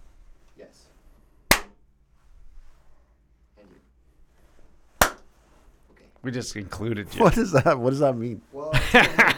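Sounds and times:
single hand clap for syncing video: 1.5 - 1.8, 5.0 - 5.3
speech: 6.2 - 9.3
laughter: 7.0 - 7.8, 8.7 - 9.3.

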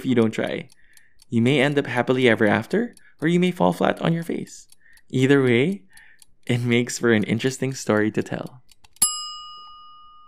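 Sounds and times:
speech: 0.0 - 8.6
single bell strike: 9.0 - 10.2.

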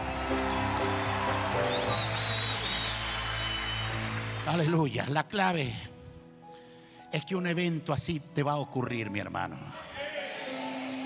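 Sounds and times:
audience applause: 0.0 - 4.8
sustained keyboard chords: 0.0 - 4.8, 10.3 - 11.0
speech: 4.5 - 5.9, 7.1 - 9.9.

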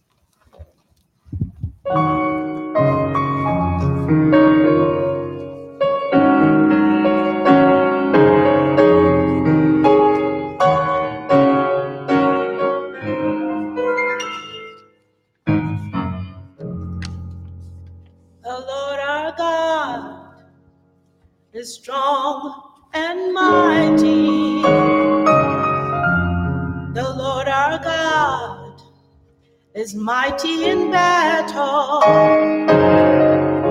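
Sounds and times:
speech: 1.9 - 2.1
church music ministry worship music: 1.9 - 33.6.

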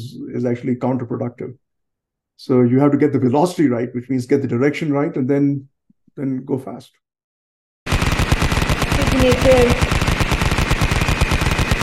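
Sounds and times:
speech: 0.0 - 1.6, 2.4 - 7.0, 9.2 - 10.0
machine-gun fire sound effect: 7.9 - 11.8.

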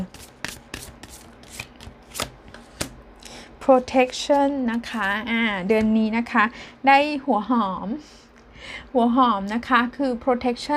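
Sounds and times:
oracle cards being shuffled: 0.0 - 3.0
speech: 3.7 - 8.2, 8.9 - 10.7.

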